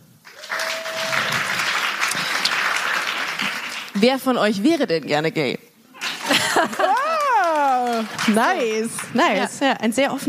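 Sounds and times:
audience clapping: 0.2 - 4.2, 6.0 - 9.6
speech: 4.0 - 5.6, 8.0 - 10.2
laughter: 6.0 - 8.5.

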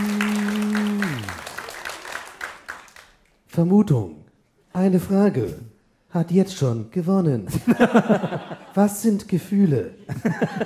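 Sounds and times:
audience applause: 0.0 - 3.2
speech: 3.6 - 4.2, 4.8 - 10.6
laughter: 7.5 - 8.8, 10.0 - 10.6.

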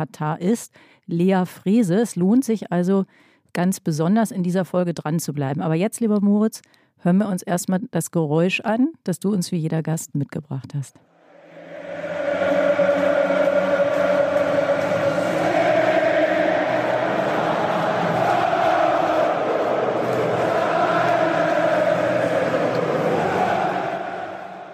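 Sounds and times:
speech: 0.0 - 11.1
crowd cheering chants: 11.2 - 24.7.

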